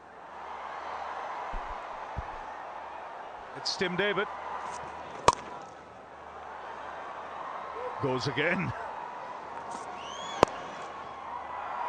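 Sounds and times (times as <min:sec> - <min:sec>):
cricket crowd cheering: 0:00.0 - 0:11.8
speech: 0:03.6 - 0:04.9, 0:08.0 - 0:08.8
faint rising whistles: 0:10.0 - 0:10.8.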